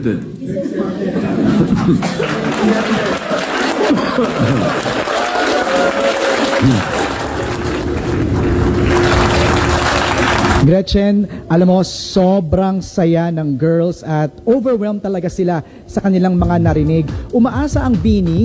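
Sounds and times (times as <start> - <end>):
speech: 0.0 - 7.2, 10.6 - 18.4
laughter: 0.0 - 12.4, 16.2 - 18.4
applause in the Senate during a session: 1.4 - 10.7.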